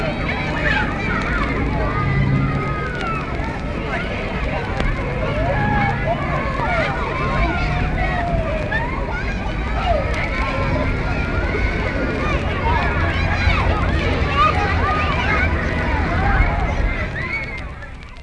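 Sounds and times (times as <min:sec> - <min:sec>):
children: 0:00.0 - 0:18.2.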